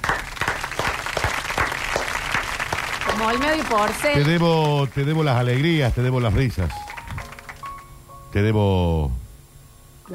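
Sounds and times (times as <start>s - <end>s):
applause: 0.0s - 7.9s
speech: 3.2s - 6.8s, 8.4s - 9.2s.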